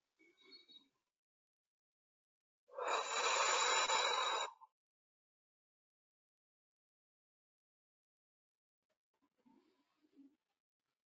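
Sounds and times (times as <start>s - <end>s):
long breath blown out during a guided letting-go exercise: 2.8s - 4.5s.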